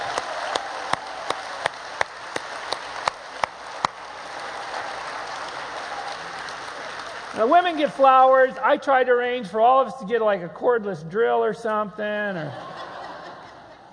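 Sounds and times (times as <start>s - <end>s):
audience applause for standing fathers: 0.0s - 8.6s
speech: 7.4s - 12.7s
laughter: 12.4s - 13.9s.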